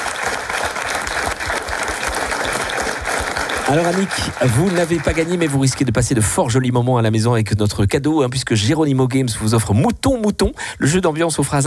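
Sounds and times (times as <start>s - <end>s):
studio audience applause: 0.0s - 6.6s
speech: 3.7s - 11.6s.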